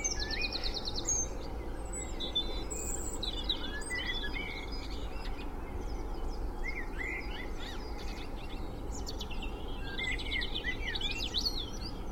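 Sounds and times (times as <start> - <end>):
spring dawn chorus birdsong in Cheshire UK: 0.0 - 12.1.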